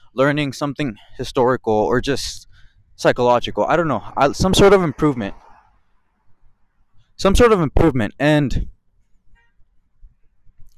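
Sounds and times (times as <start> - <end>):
speech: 0.2 - 5.4, 7.2 - 8.7
car horn honking: 9.3 - 9.6.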